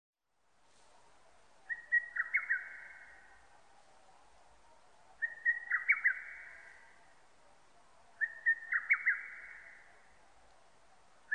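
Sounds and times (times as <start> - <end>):
lesser cuckoo song of staccato whistled phrases: 1.7 - 3.0, 5.2 - 6.7, 8.2 - 9.8.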